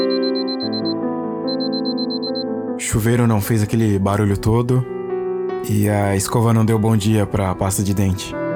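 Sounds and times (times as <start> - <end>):
alarm clock ringing: 0.1 - 2.4
speech: 2.9 - 5.0, 5.7 - 8.4.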